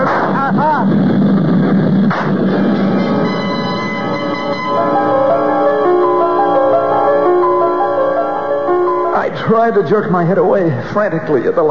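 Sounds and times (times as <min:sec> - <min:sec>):
gunshot: 0:00.0 - 0:01.0, 0:02.0 - 0:02.6
engine drone: 0:00.0 - 0:09.3
ringing humming tones: 0:02.4 - 0:09.3
speech: 0:09.5 - 0:11.6.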